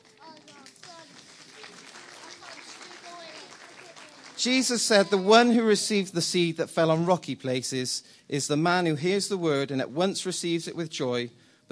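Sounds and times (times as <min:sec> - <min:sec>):
audience applause: 0:00.0 - 0:05.6
speech: 0:04.4 - 0:11.7.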